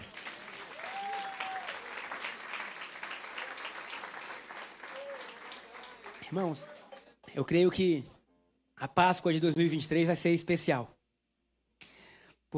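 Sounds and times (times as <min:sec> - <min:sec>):
church audience applauding: 0:00.0 - 0:07.2
speech: 0:06.3 - 0:06.8, 0:07.4 - 0:08.2, 0:08.8 - 0:11.0.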